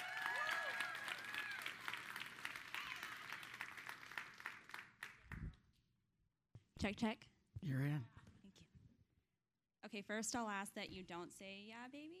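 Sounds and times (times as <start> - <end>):
audience applause: 0.0 - 5.4
speech: 6.8 - 8.1, 9.9 - 12.1.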